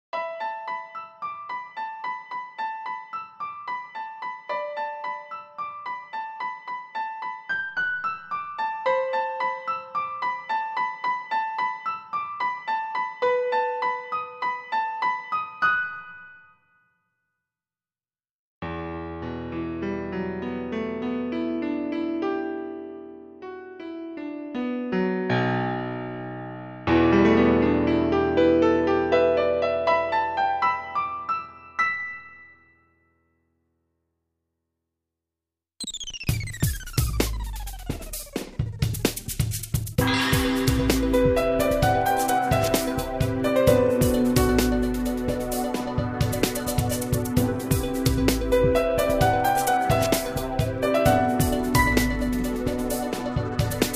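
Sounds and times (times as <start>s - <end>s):
piano: 0.1s - 17.0s, 18.6s - 33.6s, 37.0s - 53.9s.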